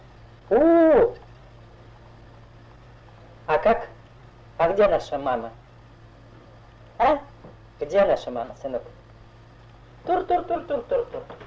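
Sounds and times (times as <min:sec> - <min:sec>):
quiet hum: 0:00.0 - 0:11.4
speech: 0:00.5 - 0:01.2, 0:03.6 - 0:03.9, 0:04.8 - 0:05.6, 0:07.9 - 0:09.0, 0:10.0 - 0:11.4
voice imitating a steam locomotive whistle: 0:00.5 - 0:01.2.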